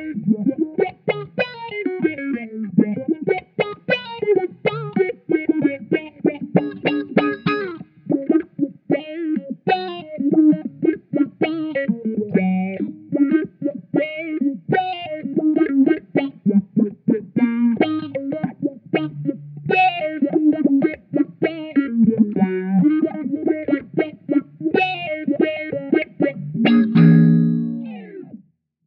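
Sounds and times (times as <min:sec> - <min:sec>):
funk music: 0:00.0 - 0:28.3.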